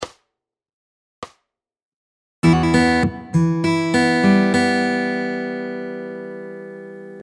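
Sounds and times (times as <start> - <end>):
fingerpicking guitar lick: 2.4 - 7.2.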